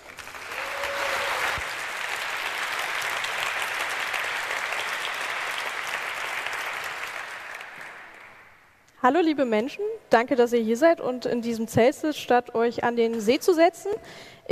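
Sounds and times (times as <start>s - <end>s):
audience applause: 0.0s - 8.7s
speech: 9.0s - 14.5s.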